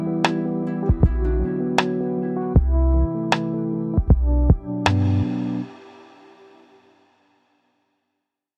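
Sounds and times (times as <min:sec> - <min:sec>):
mellow beats: 0:00.0 - 0:06.3.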